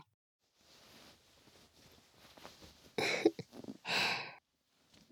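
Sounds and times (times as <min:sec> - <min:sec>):
person breathing: 0:00.6 - 0:04.4.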